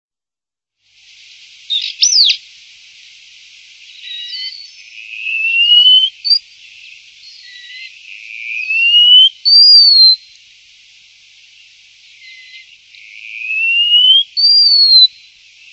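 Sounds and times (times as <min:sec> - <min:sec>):
bird calls with sharp chirps and whistles: 0:01.7 - 0:02.4, 0:03.9 - 0:10.4, 0:12.2 - 0:15.7.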